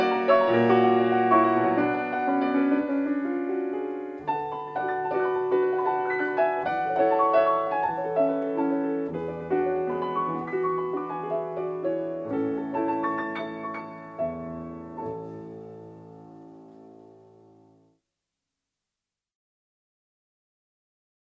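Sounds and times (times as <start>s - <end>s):
waltz music: 0.0s - 16.4s.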